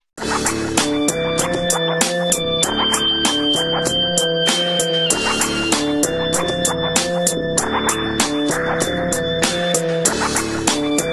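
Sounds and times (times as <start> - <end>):
hip hop music: 0.2 - 11.1.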